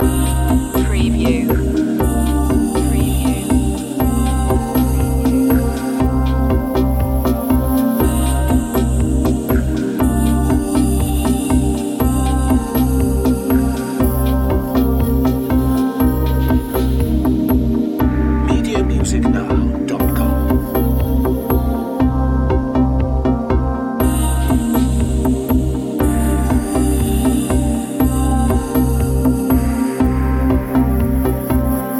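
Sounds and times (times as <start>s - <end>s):
downtempo sunset music loop: 0.0s - 31.9s.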